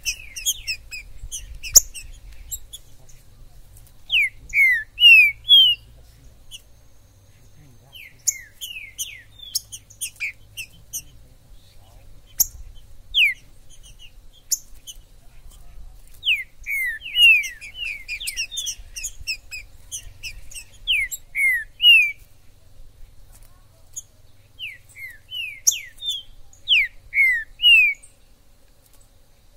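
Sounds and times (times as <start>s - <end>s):
green-winged saltator whistling: 0.0s - 3.5s, 4.1s - 15.6s, 16.2s - 22.2s, 24.5s - 28.3s
high twittering birds: 0.0s - 29.5s.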